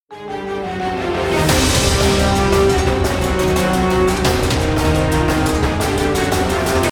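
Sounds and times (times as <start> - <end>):
ghost background music closing intro: 0.1 - 6.9.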